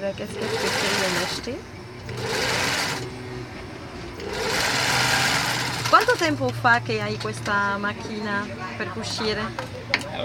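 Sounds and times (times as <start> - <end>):
speech: 0.0 - 2.5, 5.9 - 10.2
sewing machine stitching fabric: 0.2 - 3.2, 4.2 - 6.5.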